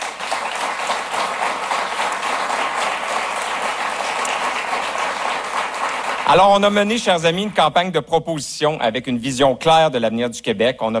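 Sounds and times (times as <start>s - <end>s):
audience applause: 0.0s - 6.9s
speech: 6.3s - 10.9s.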